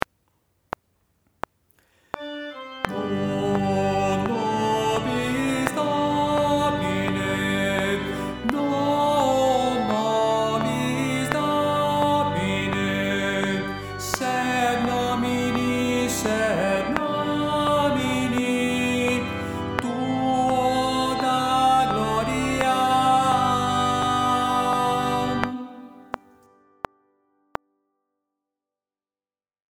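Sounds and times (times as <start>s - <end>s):
men singing: 2.9s - 26.2s.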